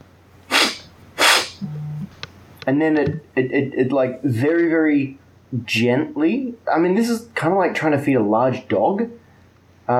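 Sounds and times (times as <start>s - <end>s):
low steady hum: 0.0s - 9.9s
person imitating a bear sniffing: 0.5s - 2.1s
speech: 2.6s - 9.2s.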